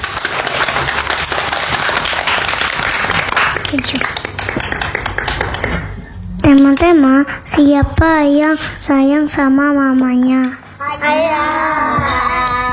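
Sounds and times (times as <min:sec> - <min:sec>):
audience applause: 0:00.0 - 0:06.0
speech: 0:03.7 - 0:04.8, 0:06.5 - 0:12.4.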